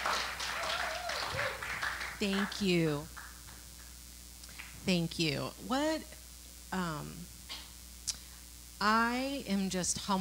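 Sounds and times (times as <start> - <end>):
audience applause: 0.0 - 2.6
speech: 2.2 - 3.2, 4.8 - 7.4, 8.8 - 10.1.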